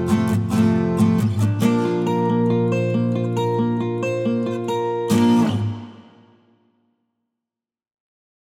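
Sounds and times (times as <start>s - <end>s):
short acoustic music: 0.0s - 6.6s.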